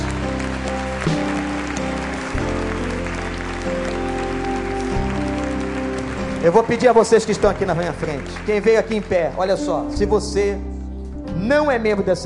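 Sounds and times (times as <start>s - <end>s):
audience applauding: 0.0s - 9.7s
keyboard chords: 0.0s - 12.2s
speech: 6.4s - 10.7s, 11.4s - 12.2s.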